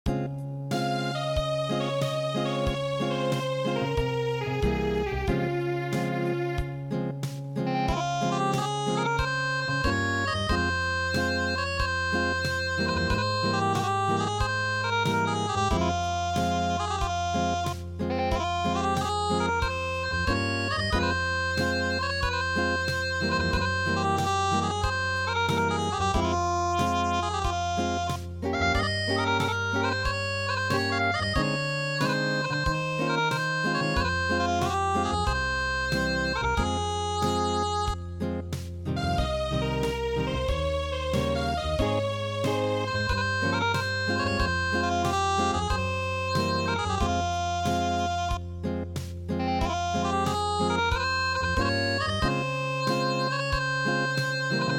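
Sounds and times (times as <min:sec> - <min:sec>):
acoustic music: 0:00.0 - 0:54.7.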